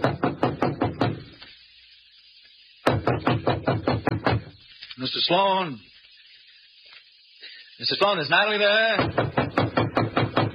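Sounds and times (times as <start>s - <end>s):
knocking on a door: 0.0s - 1.3s, 2.8s - 4.6s, 9.0s - 10.5s
speech: 5.0s - 5.9s, 7.8s - 9.4s.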